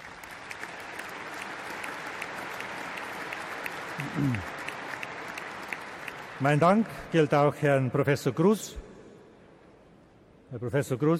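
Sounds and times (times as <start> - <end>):
audience applause: 0.0 - 7.4
speech: 4.0 - 4.6, 6.4 - 8.8, 10.5 - 11.1.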